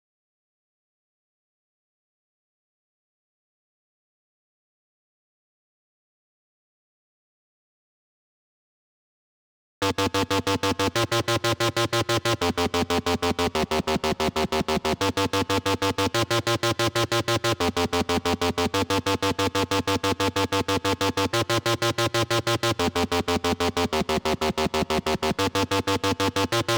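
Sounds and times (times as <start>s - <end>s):
synth: 9.8s - 26.7s.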